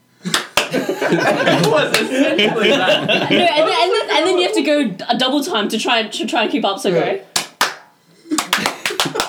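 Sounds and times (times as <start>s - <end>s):
hand clapping demonstration: 0.3s - 0.8s, 1.4s - 2.2s, 7.3s - 9.2s
laughter: 0.6s - 4.6s, 8.3s - 9.2s
speech: 0.7s - 7.4s.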